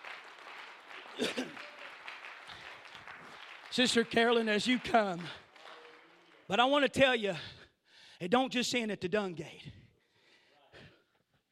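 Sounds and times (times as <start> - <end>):
audience clapping in a reverberant room: 0.0 - 7.1
speech: 1.2 - 1.5, 3.8 - 5.4, 6.5 - 7.6, 8.2 - 9.7.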